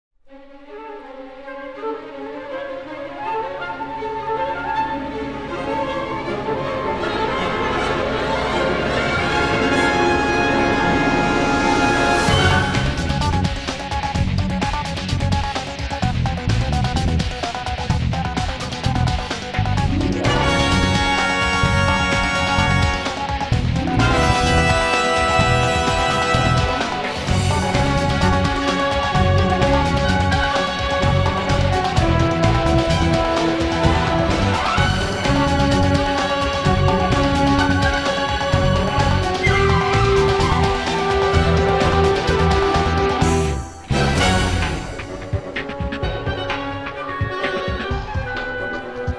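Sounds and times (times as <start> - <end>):
orchestral theme: 0.3 - 17.2, 17.9 - 49.1.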